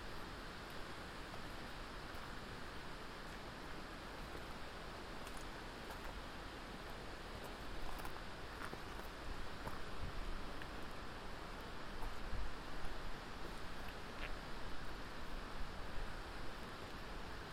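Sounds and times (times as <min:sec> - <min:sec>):
small ticks and scuffs: 0:00.1 - 0:15.2
wind noise on the Curecanti Creek Trail: 0:07.8 - 0:17.5.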